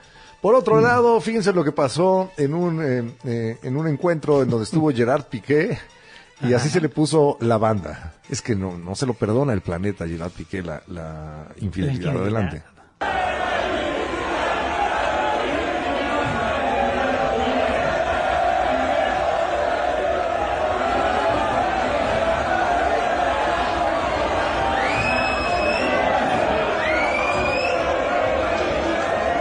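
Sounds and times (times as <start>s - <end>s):
speech: 0.4s - 13.4s
stadium crowd chanting a name: 13.0s - 29.3s
sharp rising whistles: 24.7s - 26.0s, 26.8s - 27.9s.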